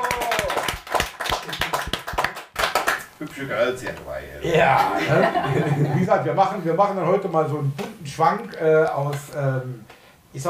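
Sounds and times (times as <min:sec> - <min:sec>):
live audience applause: 0:00.0 - 0:03.1
speech: 0:03.2 - 0:10.4
laughter: 0:04.5 - 0:06.4.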